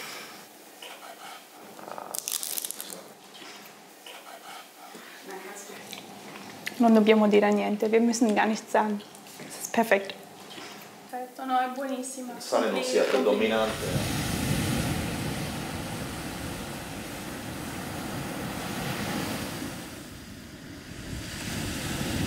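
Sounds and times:
speech: 6.8s - 9.1s, 9.8s - 10.2s, 11.5s - 14.2s
ocean waves breaking on shore: 13.4s - 22.2s.

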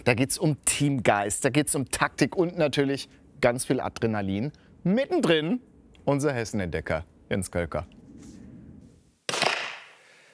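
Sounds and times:
speech: 0.0s - 8.0s
single gunshot at the federal police shooting range in Hünfeld: 9.3s - 10.0s.

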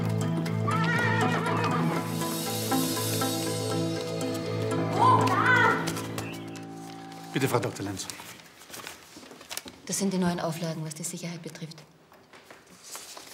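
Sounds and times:
horse hooves clopping and stamping: 0.0s - 8.8s
horse neighing: 0.7s - 2.2s
speech: 7.4s - 8.3s, 9.9s - 12.0s.

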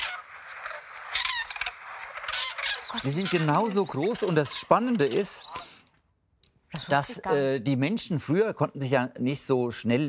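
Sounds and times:
young cranes peeping: 0.0s - 5.8s
speech: 2.9s - 5.6s, 6.9s - 10.0s.

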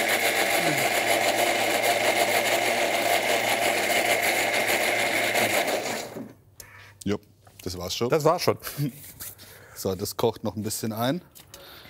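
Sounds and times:
kitchen mixer blending a sauce: 0.0s - 6.3s
speech: 7.1s - 9.2s, 9.8s - 11.4s.

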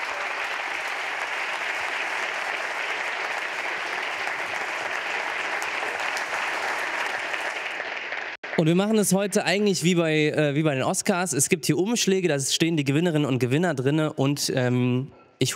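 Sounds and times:
audience applause: 0.0s - 9.6s
speech: 8.6s - 15.5s.

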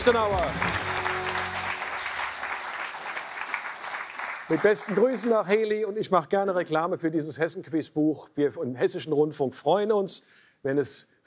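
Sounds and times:
speech: 0.0s - 1.0s, 4.5s - 11.2s
audience applause: 0.0s - 5.5s.

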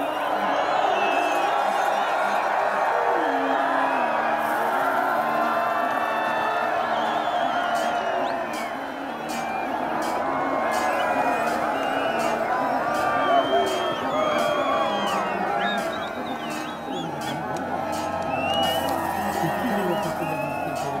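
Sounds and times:
laughter: 0.0s - 20.9s
spectators cheering at a horse race finish: 0.0s - 20.9s
rhythmic thudding: 4.3s - 20.9s.

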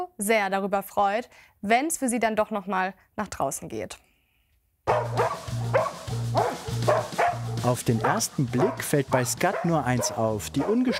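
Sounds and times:
speech: 0.1s - 4.1s, 4.8s - 5.8s, 7.6s - 10.9s
husky barking and yowling excitedly: 4.9s - 10.9s.

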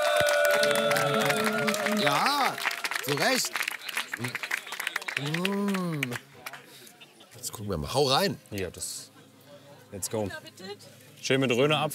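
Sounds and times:
audience applause: 0.0s - 6.6s
speech: 2.1s - 3.6s, 4.2s - 4.5s, 5.2s - 6.2s, 7.5s - 9.1s, 9.9s - 11.9s.

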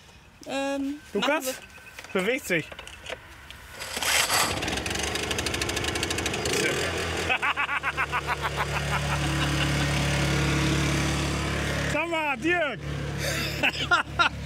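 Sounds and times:
speech: 0.4s - 2.9s, 7.6s - 9.8s, 12.0s - 14.3s
portable power generator being started: 3.7s - 12.0s
laughter: 7.2s - 10.0s, 13.2s - 14.4s.

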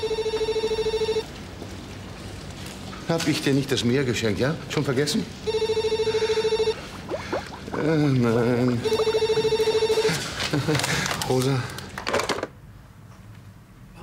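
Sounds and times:
telephone ringing: 0.0s - 1.3s, 5.5s - 6.8s, 8.7s - 10.4s
speech: 3.1s - 5.6s, 7.8s - 9.0s, 10.6s - 11.8s.

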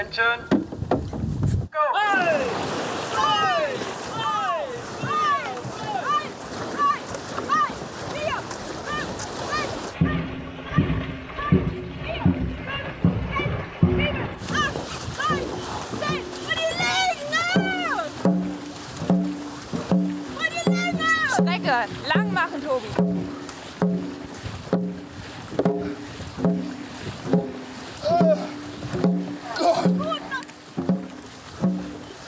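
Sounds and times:
speech: 0.0s - 0.6s
paddles splashing in water: 0.0s - 32.2s.

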